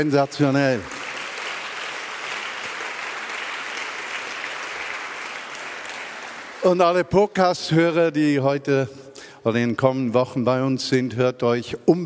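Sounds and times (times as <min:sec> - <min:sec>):
speech: 0:00.0 - 0:01.0, 0:06.6 - 0:12.0
audience applause for sermon: 0:00.0 - 0:06.8.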